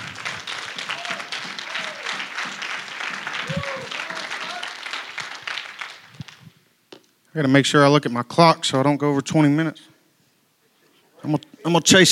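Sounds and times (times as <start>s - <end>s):
audience applause: 0.0s - 6.5s
speech: 7.4s - 9.9s, 11.3s - 12.0s.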